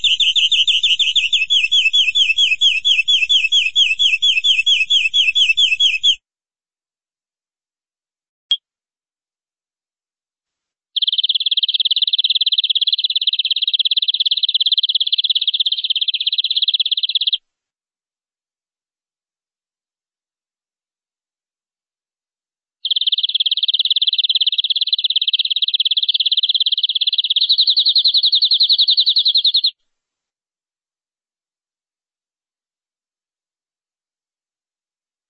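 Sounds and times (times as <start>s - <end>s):
canary trill: 0.0s - 6.2s, 11.0s - 17.4s, 22.8s - 29.8s.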